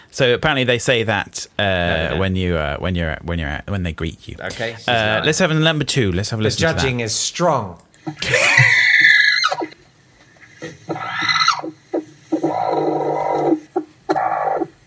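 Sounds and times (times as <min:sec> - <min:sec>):
speech: 0:00.1 - 0:08.8
chicken squawking: 0:08.0 - 0:09.8, 0:10.8 - 0:14.8.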